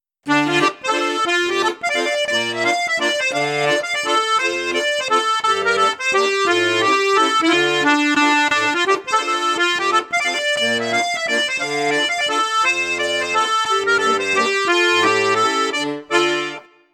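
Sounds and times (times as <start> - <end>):
accordion on high flute register: 0.2 - 16.9.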